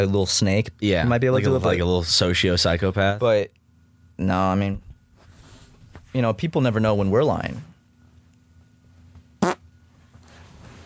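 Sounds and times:
speech: 0.0 - 3.6, 4.2 - 4.9, 6.1 - 7.7
low hum: 0.0 - 10.8
fart: 9.4 - 9.6.

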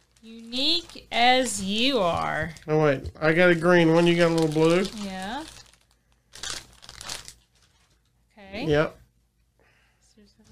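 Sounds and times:
small pouch packed inside a box being opened, crinkling and rustling: 0.0 - 2.4, 3.8 - 8.2
speech: 0.2 - 5.2, 8.7 - 9.0.

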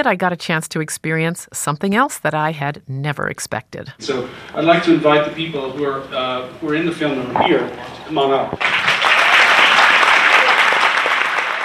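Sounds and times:
speech: 0.0 - 8.9
audience applauding: 8.2 - 11.6.

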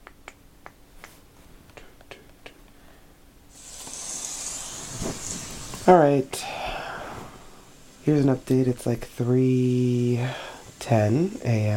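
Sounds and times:
finger snaps imitating rain drops: 0.0 - 2.8
breathy mouth hiss imitating rain: 1.8 - 11.7
speech: 5.9 - 6.6, 8.0 - 11.7.

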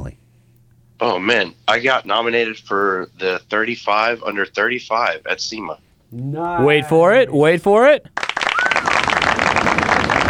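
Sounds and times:
speech: 1.0 - 8.2
crowd cheering and applauding: 8.2 - 10.2.

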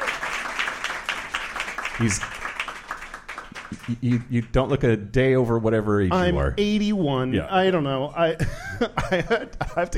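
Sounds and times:
live audience round of applause: 0.0 - 4.4
speech: 2.0 - 2.4, 3.7 - 9.9.

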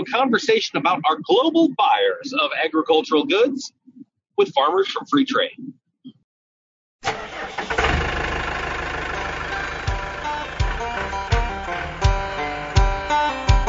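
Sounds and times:
speech: 0.0 - 3.8, 4.4 - 5.8, 7.0 - 8.1
gasoline engine cranking and struggling to start: 7.0 - 12.9.

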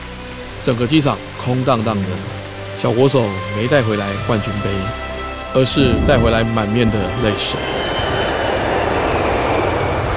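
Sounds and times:
speech: 0.6 - 8.0
jet airplane landing on a runway: 5.6 - 10.1.

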